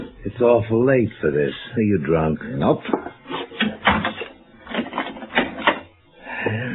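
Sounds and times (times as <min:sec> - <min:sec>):
speech: 0:00.3 - 0:03.2
door closing: 0:03.6 - 0:05.9.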